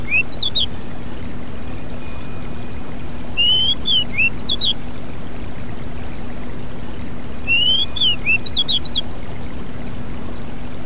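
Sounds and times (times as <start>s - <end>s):
Pied bushchat song: 0.0s - 4.8s, 7.1s - 9.1s.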